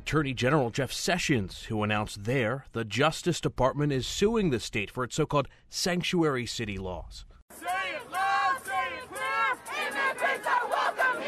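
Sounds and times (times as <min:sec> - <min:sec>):
speech: 0:00.1 - 0:08.2
protesters chanting at Attorney General Jeff Sessions in Sacramento: 0:07.5 - 0:11.2.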